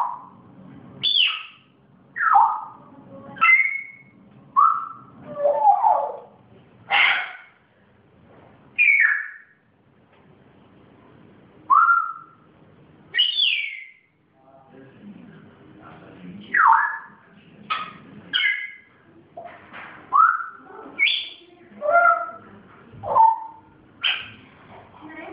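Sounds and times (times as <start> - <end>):
pet grey parrot whistling: 1.0 - 1.6, 2.2 - 2.8, 3.4 - 6.3, 8.8 - 9.6, 11.7 - 12.4, 13.1 - 14.1, 16.5 - 18.9, 20.1 - 22.4.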